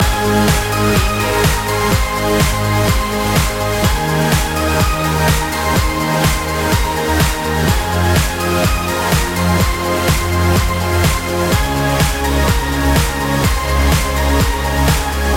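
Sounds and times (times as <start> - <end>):
loop: 0.0 - 15.3.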